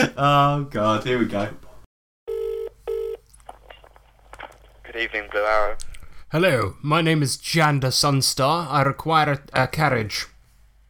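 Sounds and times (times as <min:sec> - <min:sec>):
speech: 0:00.0 - 0:01.6, 0:05.0 - 0:10.3
long buzzy electronic telephone tones: 0:02.3 - 0:03.2.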